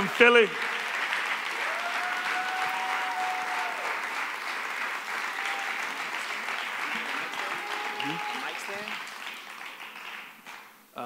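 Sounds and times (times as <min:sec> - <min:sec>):
audience applause: 0:00.0 - 0:10.9.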